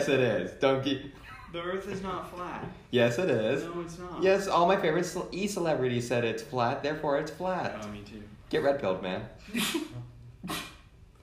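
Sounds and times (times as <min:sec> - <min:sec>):
speech: 0:00.0 - 0:10.7
person sneezing: 0:09.5 - 0:10.9.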